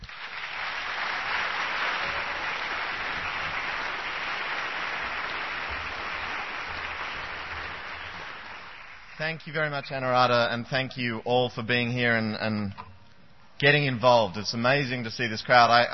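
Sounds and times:
crowd applauding: 0.0s - 9.3s
speech: 9.2s - 12.8s, 13.6s - 15.9s.

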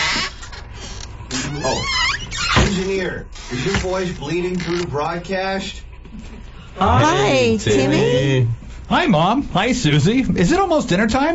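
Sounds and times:
creaking screen door opening: 0.0s - 5.0s
speech: 2.8s - 11.3s.

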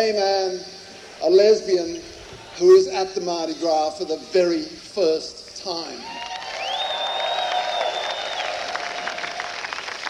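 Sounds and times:
speech: 0.0s - 6.2s
audience applause: 6.1s - 10.0s.

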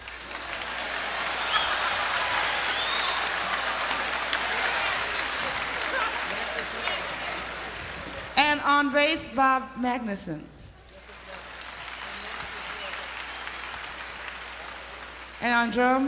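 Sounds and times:
scattered cheers: 0.0s - 8.3s, 11.4s - 15.3s
crowd applauding at the Monterey Jazz Festival: 0.0s - 8.4s, 10.8s - 16.0s
speech: 8.8s - 10.6s, 15.6s - 16.0s.

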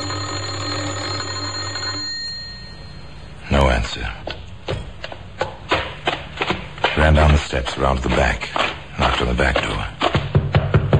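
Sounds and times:
doorbell ringing: 0.0s - 3.4s
faint hum: 0.0s - 10.9s
speech: 3.9s - 4.4s, 7.0s - 8.6s, 9.2s - 9.9s.

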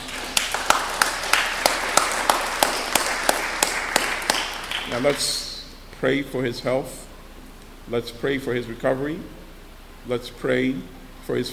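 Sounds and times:
audience applause: 0.0s - 5.4s
speech: 5.0s - 7.1s, 7.9s - 9.4s, 10.0s - 11.5s.

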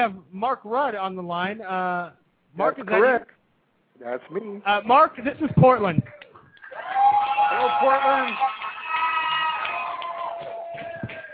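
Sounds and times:
speech: 0.0s - 3.4s, 4.0s - 6.2s, 7.6s - 8.5s
live studio audience cheering: 4.8s - 11.3s.

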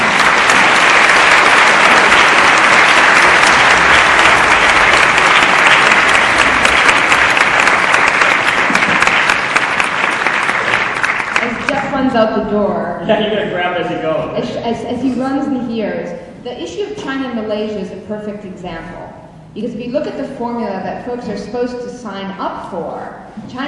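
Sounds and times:
audience applause: 0.0s - 11.9s
speech: 12.2s - 23.6s.

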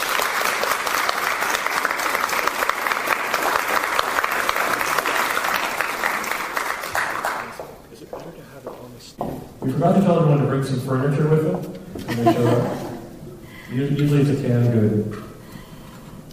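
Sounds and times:
crowd clapping: 0.0s - 7.8s
speech: 9.8s - 12.9s, 13.7s - 15.2s
laughter: 12.0s - 13.2s.

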